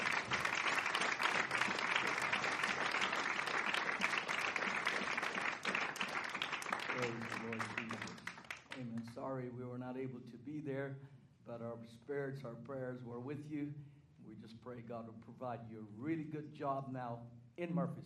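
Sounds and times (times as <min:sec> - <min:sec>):
audience applause: 0:00.0 - 0:08.9
speech: 0:09.2 - 0:18.0.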